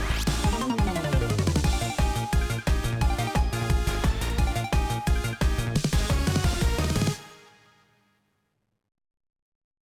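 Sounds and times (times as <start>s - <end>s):
field scroll game music loop: 0.0s - 7.3s.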